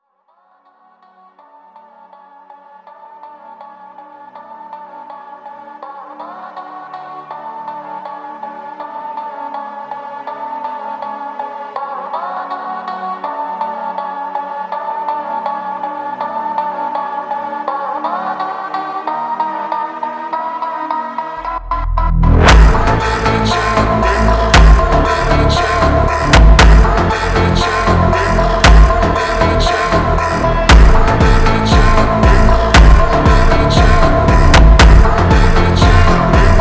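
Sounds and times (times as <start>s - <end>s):
slowed funk with reverb: 21.4s - 36.6s.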